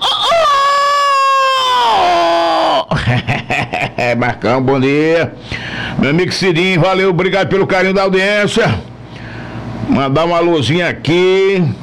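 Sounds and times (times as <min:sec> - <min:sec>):
hoarse rooster crowing: 0:00.0 - 0:02.9
laughter: 0:02.8 - 0:04.4
speech: 0:03.1 - 0:08.9, 0:09.9 - 0:11.8.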